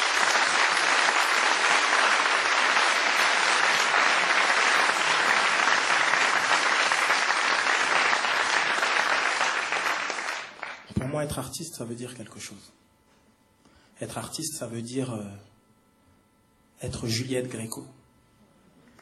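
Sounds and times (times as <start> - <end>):
large crowd applause: 0.0 - 10.9
speech: 11.2 - 12.8, 14.0 - 15.5, 16.8 - 18.0.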